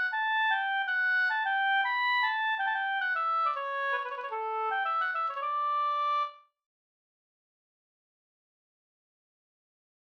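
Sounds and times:
polska folk dance tune: 0.0s - 6.3s.

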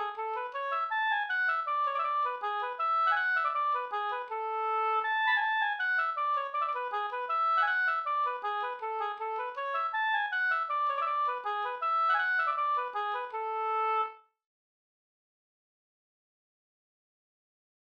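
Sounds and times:
waltz music: 0.0s - 14.1s.

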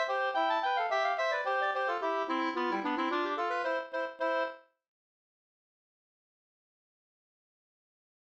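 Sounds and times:
polka music: 0.0s - 4.6s.

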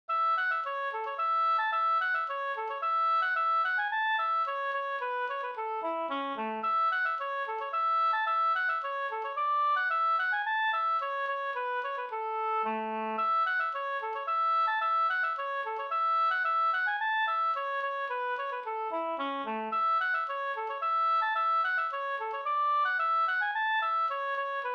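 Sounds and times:
slangpolska folk dance tune: 0.1s - 24.7s.

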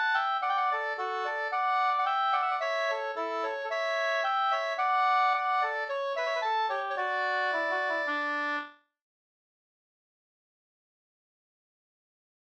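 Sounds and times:
wedding march music: 0.0s - 8.6s.

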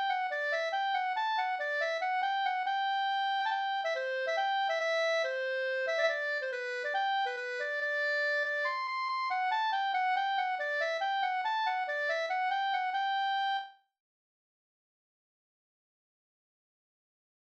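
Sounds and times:
mazurka: 0.0s - 13.7s.

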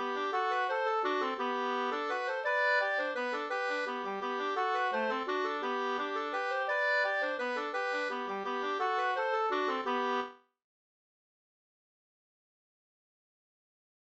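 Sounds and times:
waltz music: 0.0s - 10.3s.

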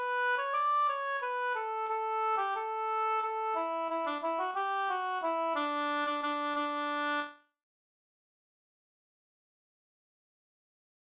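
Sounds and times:
bridal waltz music: 0.0s - 7.1s.

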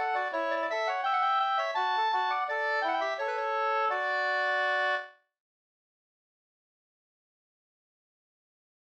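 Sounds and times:
folk walking tune: 0.0s - 5.1s.

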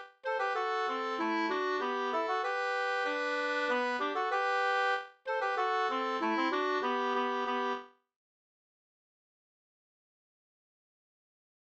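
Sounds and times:
polka music: 0.0s - 7.9s.

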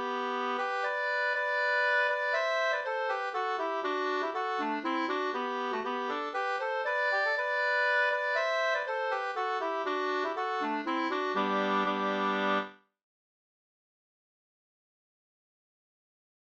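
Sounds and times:
hambo polska folk dance tune: 0.0s - 12.7s.

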